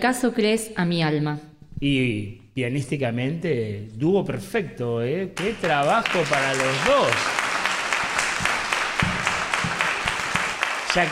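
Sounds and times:
speech: 0.0s - 7.4s, 10.9s - 11.1s
audience applauding in a historic auditorium: 5.4s - 11.1s.

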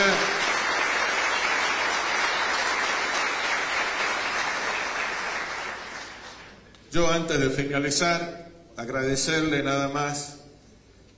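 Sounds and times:
applause: 0.0s - 6.6s
speech: 7.0s - 10.4s.

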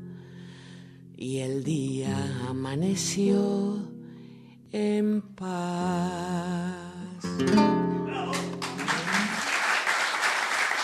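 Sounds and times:
speech: 1.2s - 3.9s, 4.7s - 7.8s
audience applause: 8.2s - 10.8s.

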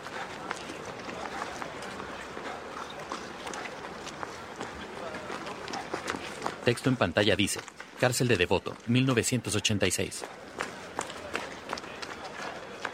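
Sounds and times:
continuous noise: 0.0s - 12.9s
footsteps of a man jogging around a prison yard: 0.0s - 12.9s
speech: 6.6s - 10.4s.

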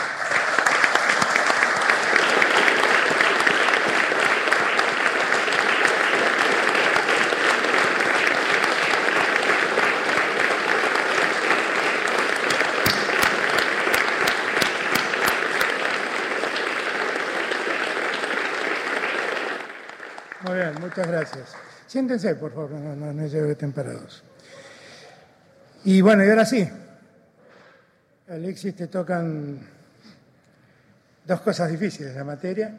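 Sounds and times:
loud audience applause: 0.0s - 21.8s
speech: 21.0s - 24.3s, 25.8s - 26.8s, 28.5s - 29.8s, 31.3s - 32.7s.

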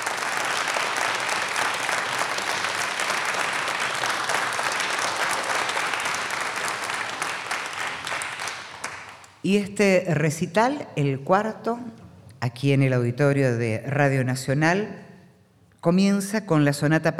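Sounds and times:
audience applause: 0.0s - 9.4s
speech: 9.4s - 15.0s, 15.8s - 17.1s.

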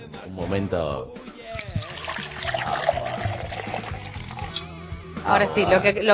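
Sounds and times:
speech: 0.3s - 1.9s, 5.2s - 6.1s
Rosé Malbec wine poured from a bottle over ice: 1.5s - 4.7s.

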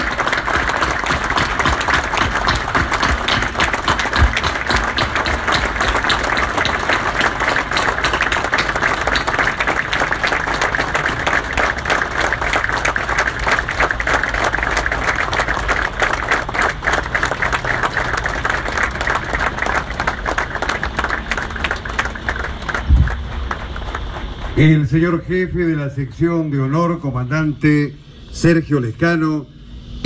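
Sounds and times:
large crowd applauding: 0.0s - 25.8s
speech: 24.6s - 30.0s.

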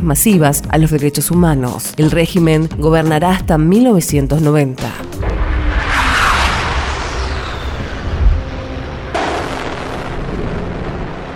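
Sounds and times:
speech: 0.0s - 5.2s
aerial bombing explosions: 5.1s - 11.3s.

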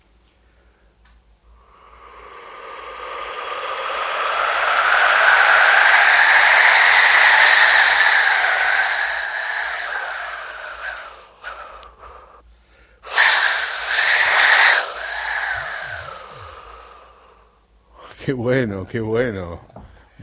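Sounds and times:
Aztec wind-god whistle imitating wind: 1.6s - 12.4s, 13.1s - 17.5s
speech: 18.3s - 20.2s.

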